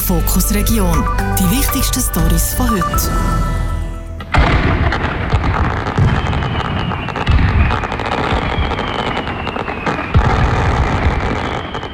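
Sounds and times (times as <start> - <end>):
speech: 0.1 - 3.6
fireworks exploding: 4.3 - 11.9.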